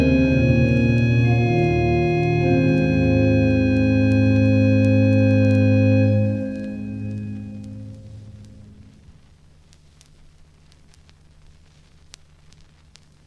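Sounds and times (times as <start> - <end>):
prelude in A flat major: 0.0 - 9.0.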